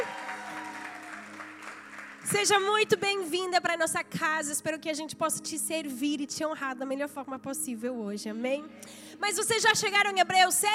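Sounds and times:
audience applauding: 0:00.0 - 0:02.6
speech: 0:02.3 - 0:10.7.

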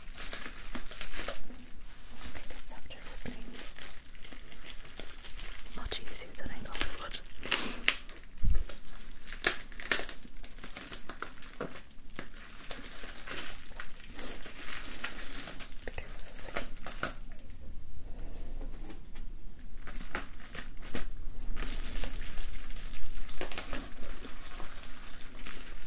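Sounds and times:
festive decorations crinkling and rustling: 0:00.0 - 0:25.8.

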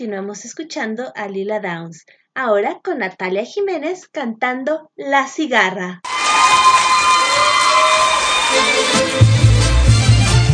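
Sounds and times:
speech: 0:00.0 - 0:07.0, 0:08.5 - 0:09.4
audience applause and cheering at concert: 0:06.0 - 0:10.5.

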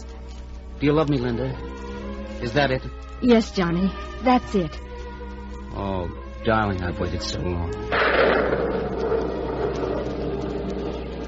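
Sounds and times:
speech: 0:00.8 - 0:01.8, 0:02.4 - 0:04.9, 0:05.7 - 0:08.6
thunder of a storm: 0:07.9 - 0:11.2.

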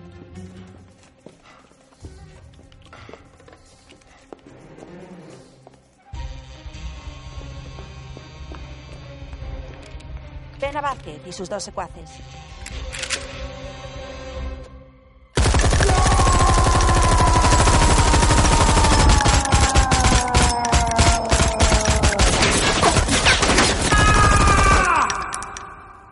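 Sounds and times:
speech: 0:10.6 - 0:12.6
automatic gunfire in an action spy comedy film: 0:15.4 - 0:25.6.

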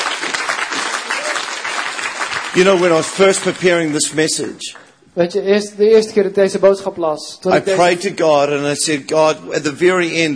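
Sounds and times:
audience applause: 0:00.0 - 0:04.9
speech: 0:02.6 - 0:10.3.

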